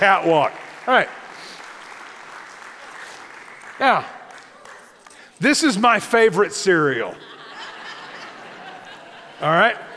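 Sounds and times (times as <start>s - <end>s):
speech: 0.0s - 1.2s, 3.8s - 4.2s, 5.4s - 7.3s, 9.4s - 9.9s
audience applause: 0.0s - 5.2s
laughter: 7.0s - 9.9s.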